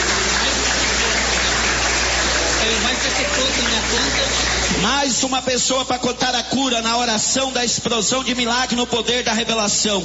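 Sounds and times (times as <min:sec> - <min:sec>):
audience applause: 0:00.0 - 0:05.2
murmur of voices: 0:00.0 - 0:05.4
speech: 0:03.2 - 0:10.0.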